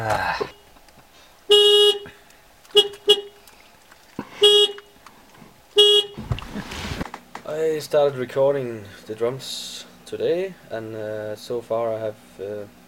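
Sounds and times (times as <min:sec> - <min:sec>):
speech: 0:00.0 - 0:00.6, 0:07.6 - 0:12.8
vehicle horn honking: 0:01.5 - 0:03.4, 0:04.4 - 0:04.9, 0:05.7 - 0:06.2
rustling: 0:02.6 - 0:07.4.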